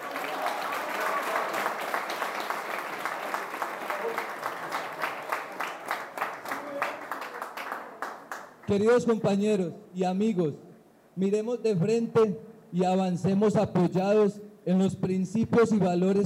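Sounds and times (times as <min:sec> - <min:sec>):
audience applause: 0:00.0 - 0:08.7
speech: 0:08.7 - 0:16.2.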